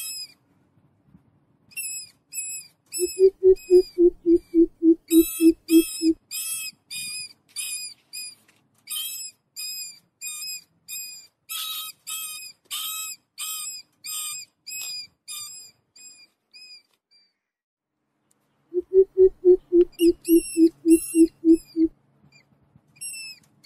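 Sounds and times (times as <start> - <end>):
mouse squeaking: 1.8 - 17.3, 18.8 - 23.4
beeping: 3.0 - 6.2, 18.8 - 21.9.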